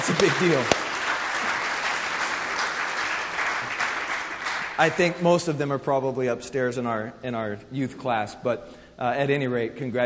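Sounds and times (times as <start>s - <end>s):
audience clapping: 0.0s - 5.2s
speech: 0.1s - 0.8s, 4.8s - 10.0s.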